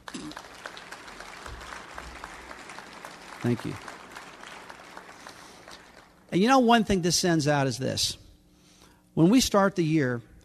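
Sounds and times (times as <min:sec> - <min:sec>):
round of applause: 0:00.0 - 0:06.3
speech: 0:03.4 - 0:03.9, 0:06.3 - 0:08.2, 0:09.2 - 0:10.3.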